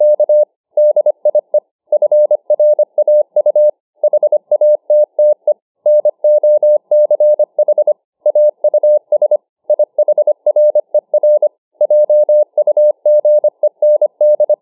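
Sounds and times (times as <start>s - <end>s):
Morse code at 25 words per minute: 0.0s - 14.6s.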